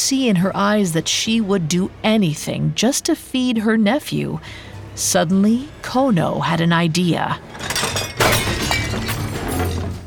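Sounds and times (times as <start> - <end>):
speech: 0.1 - 7.5
bowls knocked off a table, breaking: 7.5 - 10.0.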